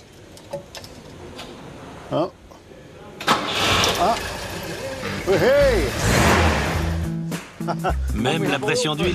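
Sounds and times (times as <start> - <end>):
speech: 2.1 - 2.4, 4.0 - 4.4, 5.3 - 6.2, 7.7 - 9.1
Volvo car engine starting: 3.2 - 7.2.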